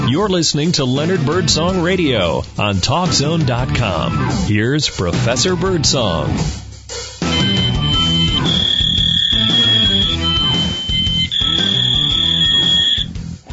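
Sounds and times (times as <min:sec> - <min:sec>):
speech: 0:00.2 - 0:07.1
fax machine giving off shrill electronic tones: 0:07.3 - 0:13.1.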